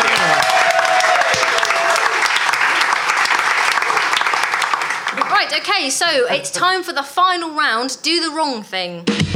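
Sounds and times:
audience applause: 0.0s - 5.9s
speech: 5.4s - 9.2s.

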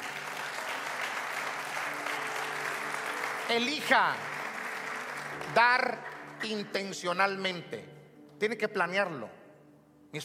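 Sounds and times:
audience applause: 0.0s - 6.7s
speech: 3.5s - 4.3s, 5.4s - 9.4s.

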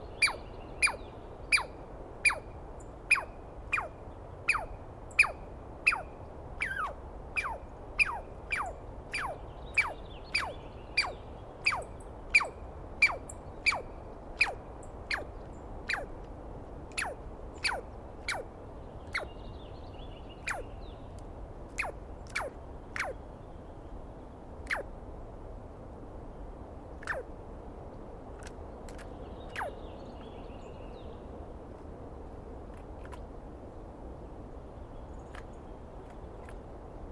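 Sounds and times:
faint bird chirps: 0.0s - 16.1s, 16.9s - 21.1s, 21.8s - 23.8s, 24.6s - 24.9s, 27.0s - 27.3s, 28.4s - 31.1s
Douglas squirrel alarm call: 0.1s - 16.1s, 16.9s - 18.5s, 19.1s - 19.4s, 20.4s - 20.8s, 21.7s - 23.2s, 24.6s - 24.9s, 27.0s - 27.3s, 29.5s - 29.8s.

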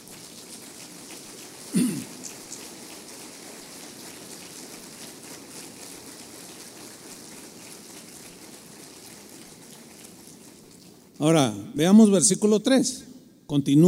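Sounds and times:
audience applause: 0.0s - 10.6s
speech: 11.2s - 13.8s.

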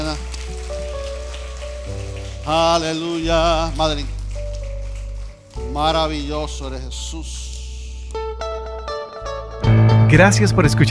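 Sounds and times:
audience applause: 0.0s - 5.6s
sustained keyboard chords: 0.0s - 10.8s
speech: 2.4s - 4.2s, 5.8s - 7.5s, 10.1s - 10.8s.

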